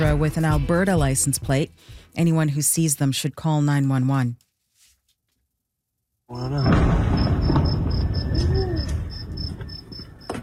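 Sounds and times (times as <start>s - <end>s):
speech: 0.0s - 4.4s, 6.3s - 7.2s
explosion in northern Iran: 6.4s - 10.0s.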